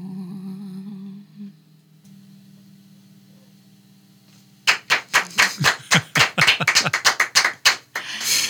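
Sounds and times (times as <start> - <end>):
small group clapping: 4.7 - 8.3
laughter: 5.3 - 7.4.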